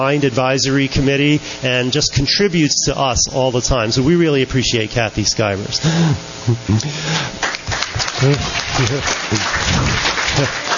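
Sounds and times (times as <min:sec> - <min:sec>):
speech: 0:00.0 - 0:07.5, 0:08.2 - 0:10.7
audience applause: 0:07.4 - 0:10.7.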